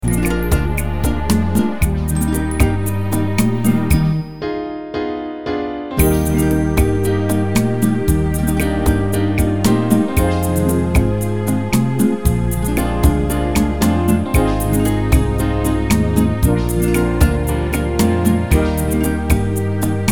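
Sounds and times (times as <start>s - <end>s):
beguine dance music: 0.0s - 4.5s, 6.0s - 20.1s.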